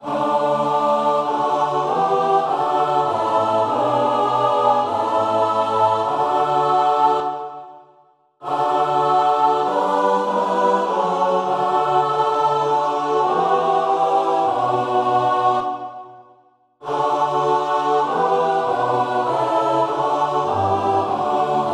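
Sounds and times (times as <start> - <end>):
soprano alto tenor bass choir singing a psalm: 0.0 - 21.7.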